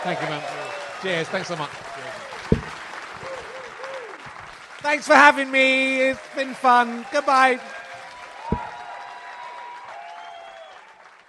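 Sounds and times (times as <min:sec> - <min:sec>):
speech: 0:00.0 - 0:01.9, 0:04.8 - 0:07.7
audience applause: 0:00.0 - 0:11.2
low thump: 0:02.5 - 0:02.8, 0:08.5 - 0:08.8.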